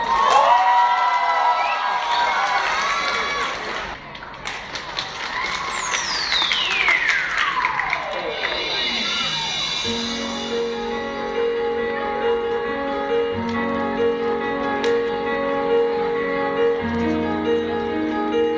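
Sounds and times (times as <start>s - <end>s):
audience clapping and cheering: 0.0s - 9.9s
long high tone gliding downward: 5.0s - 18.5s.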